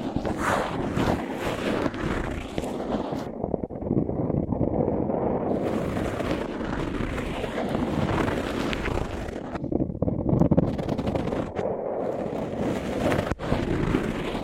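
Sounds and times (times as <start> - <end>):
microphones covered with tape rubbed and handled: 0.0 - 14.4.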